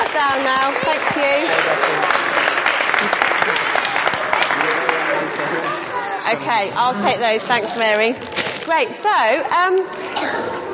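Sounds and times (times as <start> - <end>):
audience clapping: 0.0 - 6.4
speech: 0.2 - 2.2, 6.3 - 10.7.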